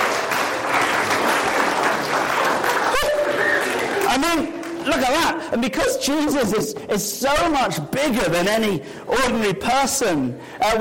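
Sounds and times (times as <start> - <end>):
audience applause for a volunteer: 0.0 - 4.9
speech: 4.2 - 10.7.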